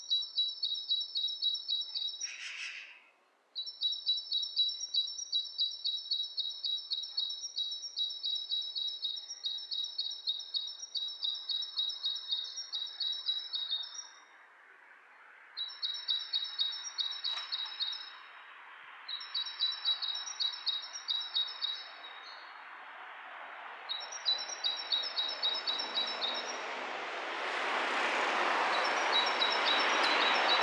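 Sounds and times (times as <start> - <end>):
bird chirping rapidly: 3.6 - 14.1, 15.6 - 18.1, 19.1 - 22.4, 23.9 - 26.6, 28.7 - 30.6
rushing burst of noise: 25.7 - 30.6.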